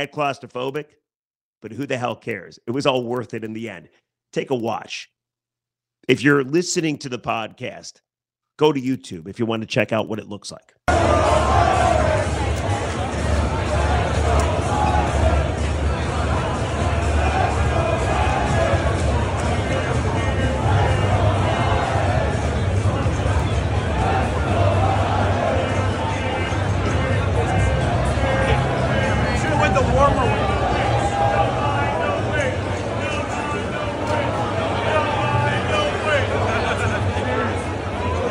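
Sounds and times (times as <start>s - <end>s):
speech: 0.0s - 1.0s, 1.6s - 5.1s, 6.1s - 12.8s
crowd chatter on a packed stadium concourse: 10.9s - 38.2s.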